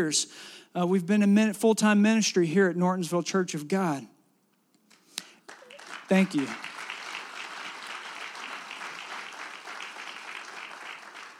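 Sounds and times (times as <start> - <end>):
speech: 0.0 - 4.1, 6.1 - 6.7
audience applause: 5.5 - 11.3.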